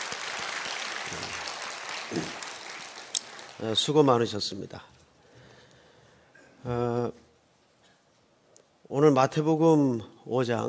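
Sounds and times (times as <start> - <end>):
crowd clapping: 0.0 - 4.0
speech: 2.1 - 2.4, 3.6 - 4.9, 6.6 - 7.2, 8.9 - 10.6.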